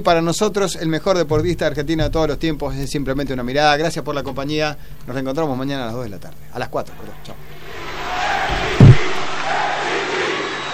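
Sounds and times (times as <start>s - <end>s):
speech: 0.0s - 7.9s
arena crowd chanting: 6.9s - 10.7s.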